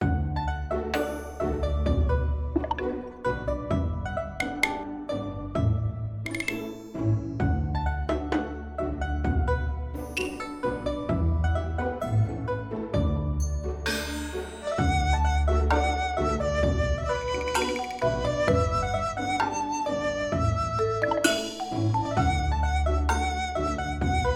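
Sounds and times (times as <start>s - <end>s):
background music: 0.0s - 24.3s.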